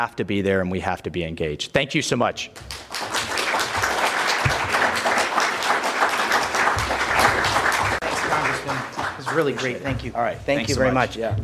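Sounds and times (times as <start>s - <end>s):
speech: 0.0s - 3.1s, 8.6s - 11.4s
audience applause: 2.7s - 10.3s.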